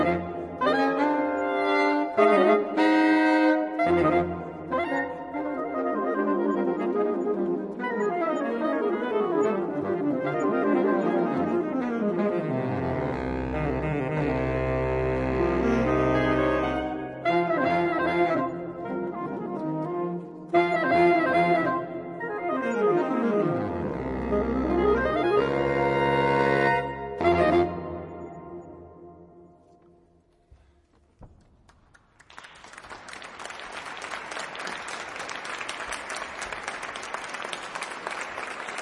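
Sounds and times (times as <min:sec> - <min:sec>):
saxophone quartet playing jazz: 0:00.0 - 0:28.9.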